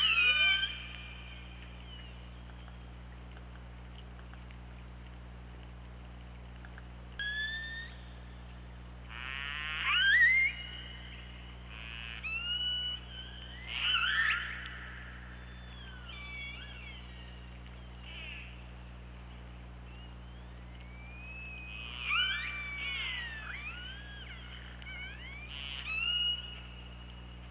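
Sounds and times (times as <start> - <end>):
orca squealing upswept calls: 0.0 - 0.9, 9.1 - 11.1, 11.7 - 17.4, 18.0 - 18.6, 21.3 - 26.8
low hum: 0.0 - 27.4.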